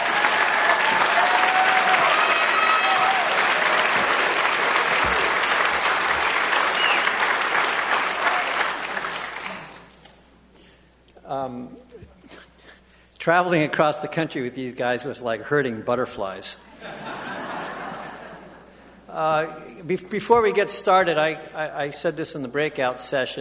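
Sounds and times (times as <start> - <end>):
audience applause: 0.0 - 10.0
speech: 13.2 - 17.0, 19.2 - 23.3
laughter: 16.7 - 18.8.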